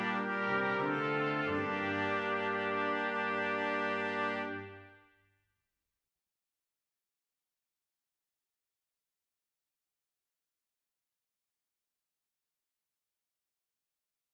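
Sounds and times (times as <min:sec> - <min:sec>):
brass quintet playing: 0:00.0 - 0:05.0.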